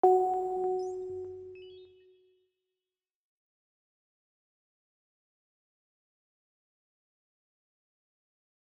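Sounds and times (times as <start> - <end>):
D sharp minor sparkle pluck synth loop: 0.0 - 2.0.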